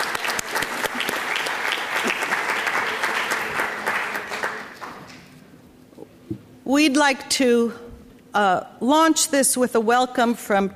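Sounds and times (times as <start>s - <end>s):
audience applause at a conference: 0.0s - 5.3s
speech: 6.7s - 7.8s, 8.4s - 10.7s.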